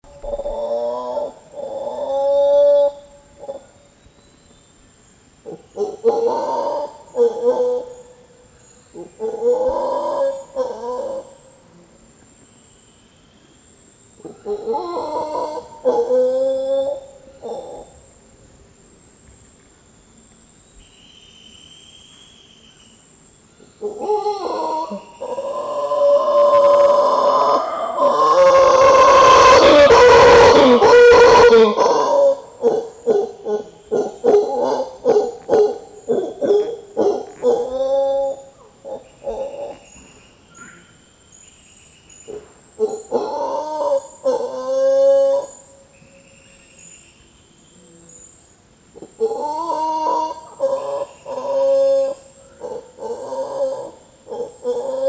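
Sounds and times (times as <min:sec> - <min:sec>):
mantled howler Alouatta palliata howling: 0:00.1 - 0:03.8, 0:05.4 - 0:08.2, 0:08.9 - 0:11.5, 0:14.2 - 0:18.0, 0:23.8 - 0:39.9, 0:42.3 - 0:45.7, 0:49.0 - 0:55.0.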